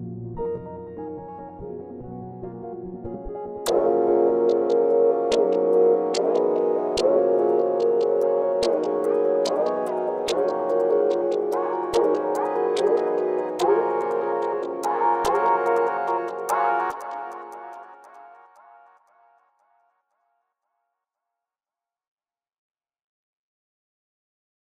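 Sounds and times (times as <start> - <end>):
instrumental music: 0.3 - 18.8.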